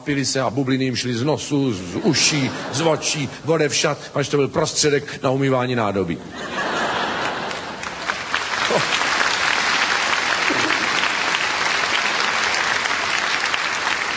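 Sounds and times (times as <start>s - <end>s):
speech: 0.0s - 6.7s
audience laughing: 1.9s - 3.5s, 6.3s - 12.8s
audience applause: 6.8s - 14.1s.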